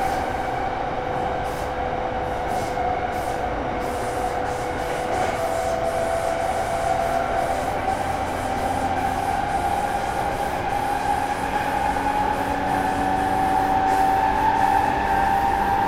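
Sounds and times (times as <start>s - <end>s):
Sotetsu 12000 series train: 0.0s - 15.8s.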